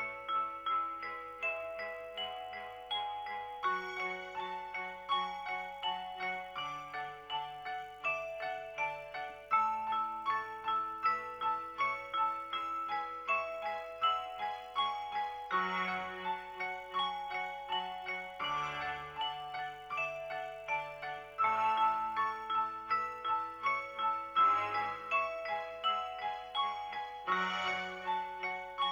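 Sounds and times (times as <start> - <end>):
piano: 0.0 - 28.9.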